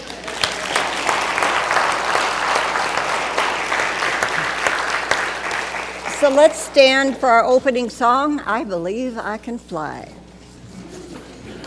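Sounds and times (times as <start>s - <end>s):
audience applause: 0.0s - 7.3s
speech: 6.2s - 10.2s.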